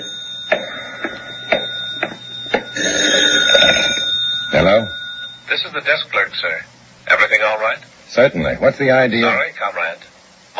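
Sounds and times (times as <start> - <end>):
telephone ringing: 0.0 - 6.3
speech: 5.6 - 10.1.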